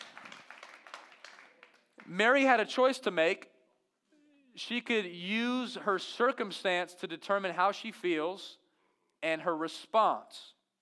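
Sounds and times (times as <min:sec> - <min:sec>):
soft golf clap: 0:00.0 - 0:02.2
speech: 0:02.1 - 0:03.5, 0:04.6 - 0:08.6, 0:09.2 - 0:10.6.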